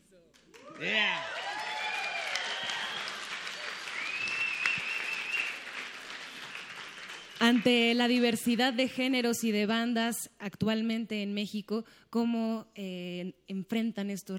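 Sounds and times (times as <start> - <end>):
crowd applause for the band: 0.4 - 7.9
cheering voices: 0.6 - 7.4
speech: 0.8 - 1.3, 7.5 - 14.3
sharp whistles: 2.4 - 7.5.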